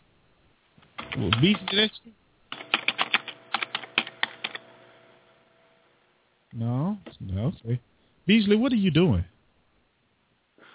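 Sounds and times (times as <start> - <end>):
typing on a keyboard: 1.0 - 1.9, 2.5 - 4.6
speech: 1.2 - 2.2, 6.6 - 9.3.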